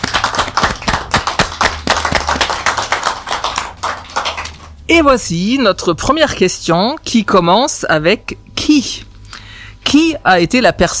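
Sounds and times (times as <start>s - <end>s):
loud audience applause: 0.0s - 4.8s
speech: 4.9s - 9.1s, 9.8s - 10.9s.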